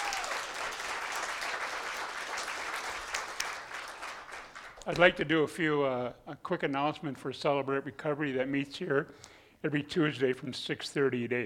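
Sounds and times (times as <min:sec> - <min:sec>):
audience applauding a speaker at a preaching service: 0:00.0 - 0:05.1
speech: 0:04.8 - 0:11.4.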